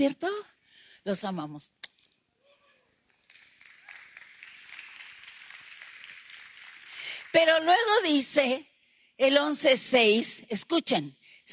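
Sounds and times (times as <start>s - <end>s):
speech: 0.0s - 0.3s, 1.0s - 1.8s, 7.3s - 11.5s
audience applause: 3.2s - 7.9s.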